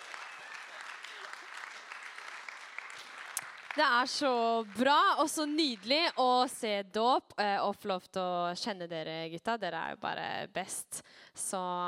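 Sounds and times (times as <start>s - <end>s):
audience applause: 0.0s - 6.2s
speech: 3.8s - 11.8s.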